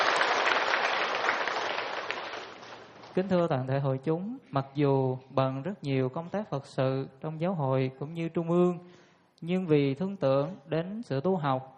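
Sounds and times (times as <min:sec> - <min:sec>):
audience applause welcoming a Buddhist teacher in Ho Chi Minh City: 0:00.0 - 0:03.2
speech: 0:03.2 - 0:11.7.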